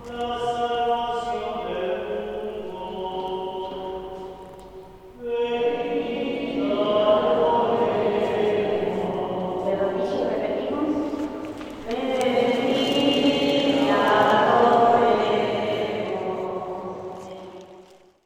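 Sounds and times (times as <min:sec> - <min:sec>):
Good Friday mass at San Pablo parish in Villa Constitucion: 0:00.0 - 0:18.2.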